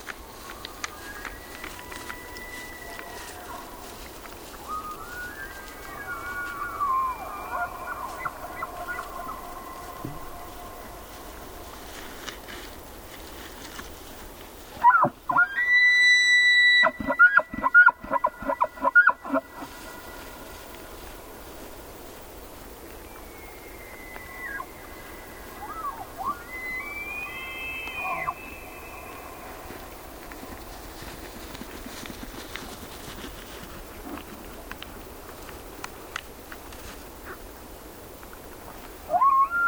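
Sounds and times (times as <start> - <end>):
two male elk bugling across a high meadow: 0.0 - 12.8, 14.8 - 21.1, 23.1 - 32.9, 39.1 - 39.6.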